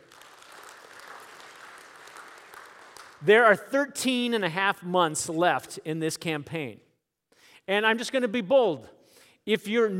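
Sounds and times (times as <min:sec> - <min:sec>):
audience applauding: 0:00.0 - 0:03.3
speech: 0:03.2 - 0:06.8, 0:07.7 - 0:09.9.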